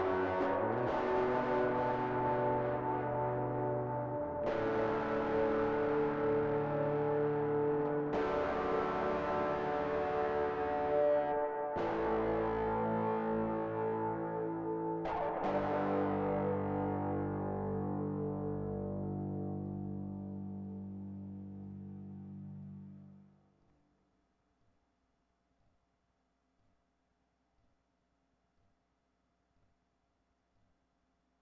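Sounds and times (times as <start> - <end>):
guitar: 0.0 - 23.6.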